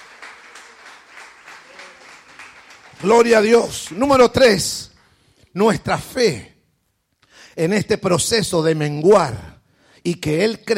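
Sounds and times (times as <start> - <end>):
audience applause: 0.0 - 3.9
speech: 3.0 - 4.9, 5.5 - 6.5, 7.6 - 10.7.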